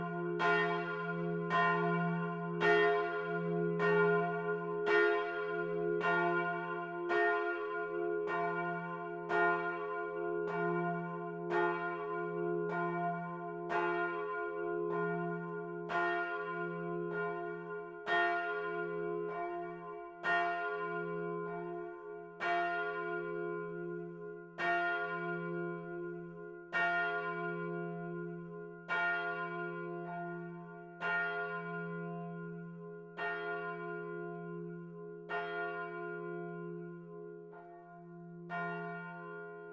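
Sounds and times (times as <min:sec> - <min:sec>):
bell: 0:00.0 - 0:39.7.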